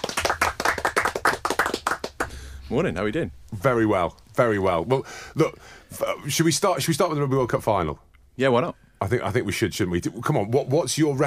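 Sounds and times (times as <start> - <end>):
audience round of applause: 0.0 - 2.4
speech: 2.7 - 11.2.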